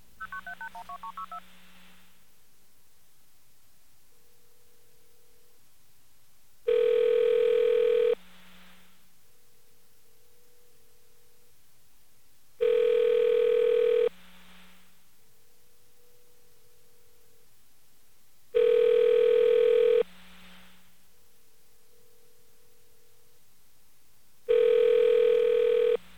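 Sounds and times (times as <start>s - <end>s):
phone ringing back: 0.2s - 1.4s, 6.7s - 8.2s, 12.6s - 14.1s, 18.6s - 20.0s, 24.5s - 26.0s
telephone dialing tones: 0.3s - 1.4s, 6.7s - 8.2s, 12.6s - 14.1s, 24.5s - 26.0s.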